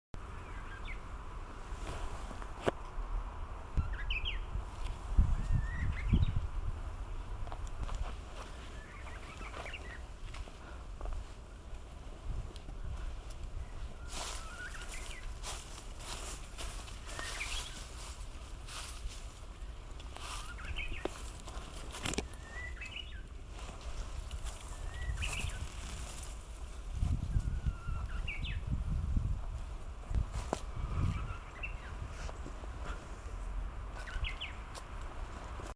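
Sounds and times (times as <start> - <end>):
uguisu bush warbler singing: 0.2 - 35.7.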